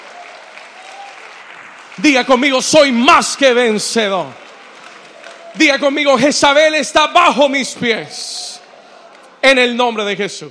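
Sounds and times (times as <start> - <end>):
crowd applause: 0.0 - 6.8
speech: 2.0 - 4.4, 5.6 - 8.5, 9.4 - 10.4.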